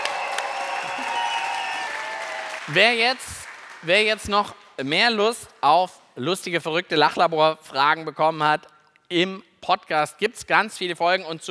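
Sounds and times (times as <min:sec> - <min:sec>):
audience applause: 0:00.0 - 0:04.1
speech: 0:02.7 - 0:11.4.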